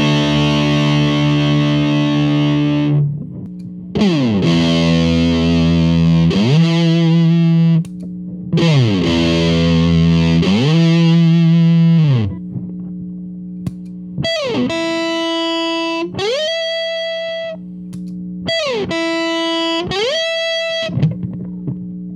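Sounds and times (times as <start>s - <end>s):
tone pot range sweep: 0.0s - 13.0s, 13.6s - 22.1s.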